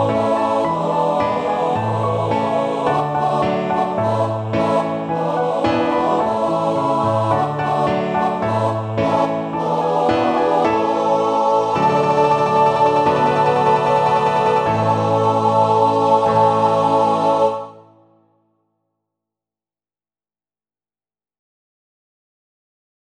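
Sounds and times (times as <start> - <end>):
four-part male choir singing in Low German: 0.0 - 18.1
piano: 0.0 - 18.4.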